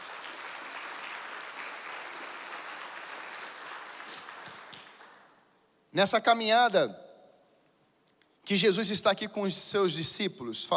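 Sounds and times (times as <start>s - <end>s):
audience applauding: 0.0s - 5.4s
speech: 6.0s - 7.0s, 8.5s - 10.7s.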